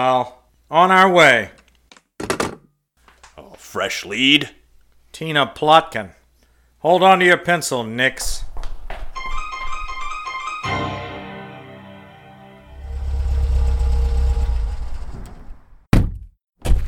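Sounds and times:
speech: 0.0 - 1.6, 3.7 - 4.6, 5.2 - 6.2, 6.8 - 8.4
car engine running while driving: 12.7 - 15.2.

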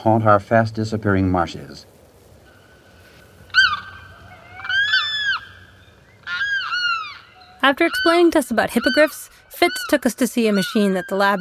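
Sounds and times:
speech: 0.0 - 1.9, 7.6 - 11.3
limpkin wailing cries: 3.5 - 11.3.

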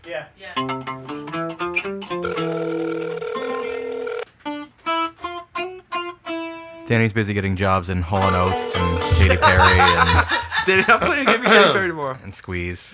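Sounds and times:
speech: 0.0 - 1.1, 6.9 - 12.9
phone call ringing tone: 2.1 - 4.2
laughter: 9.0 - 12.0.

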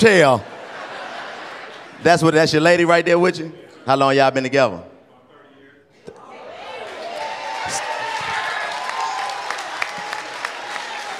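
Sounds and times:
speech: 0.0 - 0.5, 2.0 - 4.9
laughter: 0.1 - 2.4
audience clapping: 6.7 - 11.1.

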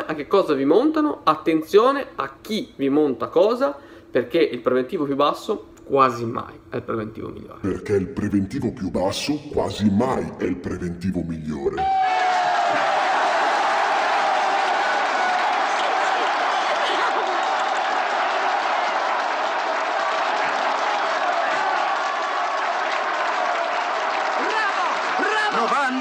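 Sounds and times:
speech: 0.1 - 12.2
crowd applause: 11.8 - 26.0.

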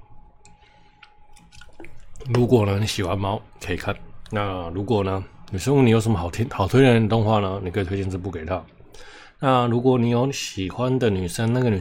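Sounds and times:
person drinking a sip of water: 0.5 - 2.4
speech: 2.2 - 11.7.

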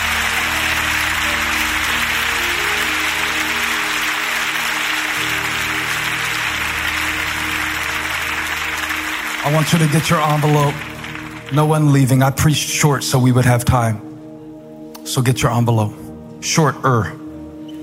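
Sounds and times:
crowd clapping: 0.0 - 12.3
speech: 9.5 - 10.9, 11.5 - 14.1, 15.1 - 17.2.

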